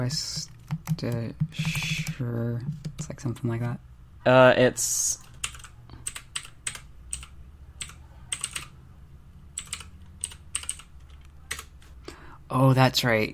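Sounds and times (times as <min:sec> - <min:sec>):
speech: 0:00.0 - 0:05.2, 0:12.5 - 0:13.3
low steady hum: 0:00.0 - 0:13.3
typing on a computer keyboard: 0:00.2 - 0:03.5, 0:05.2 - 0:08.7, 0:09.6 - 0:11.8.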